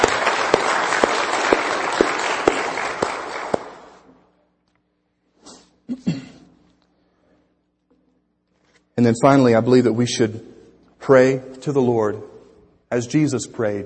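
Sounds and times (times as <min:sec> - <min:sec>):
audience applauding: 0:00.0 - 0:04.0
speech: 0:09.0 - 0:10.5, 0:11.1 - 0:12.3, 0:12.9 - 0:13.8.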